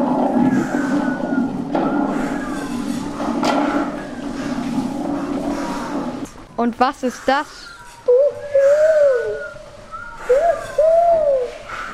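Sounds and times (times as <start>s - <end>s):
thunder cracking: 0.0s - 6.5s
storm rumble: 0.0s - 6.8s
wind whistling: 0.0s - 11.9s
speech: 6.6s - 7.8s.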